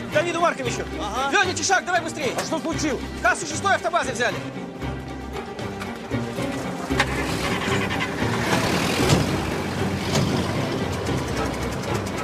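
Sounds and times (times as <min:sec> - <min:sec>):
speech: 0:00.2 - 0:04.8
car driving up and arriving: 0:04.6 - 0:12.2
clatters and bumps: 0:05.7 - 0:12.2.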